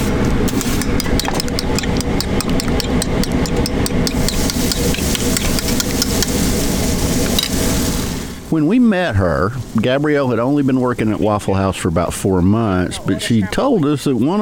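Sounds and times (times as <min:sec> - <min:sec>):
metal taps and scrapes: 0:00.0 - 0:06.4, 0:07.2 - 0:07.6
low mechanical hum: 0:00.0 - 0:08.6
hash browns sizzling on a flat-top grill: 0:00.5 - 0:08.6
speech: 0:08.6 - 0:14.4.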